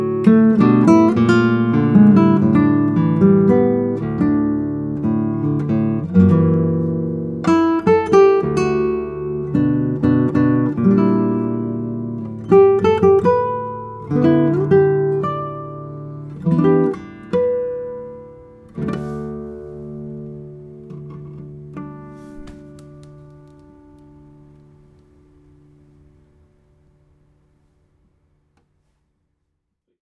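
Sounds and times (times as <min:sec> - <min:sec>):
nylon-string classical guitars playing in concert: 0:00.0 - 0:27.3.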